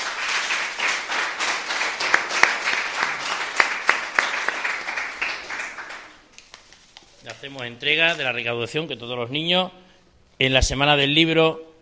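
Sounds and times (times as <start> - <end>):
audience applause: 0.0 - 6.2
speech: 7.4 - 9.8, 10.4 - 11.7.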